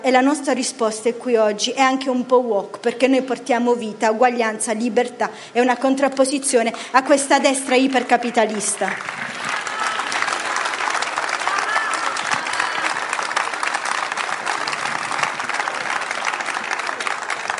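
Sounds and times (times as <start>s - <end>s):
speech: 0.0s - 9.4s
audience applause: 8.4s - 17.5s.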